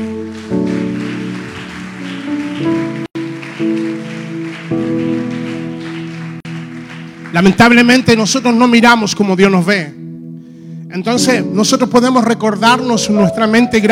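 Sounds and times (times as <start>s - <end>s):
loud audience applause: 0.0s - 8.6s
held keyboard chords: 0.0s - 9.1s, 11.0s - 13.9s
speech: 7.4s - 10.0s, 10.9s - 13.9s.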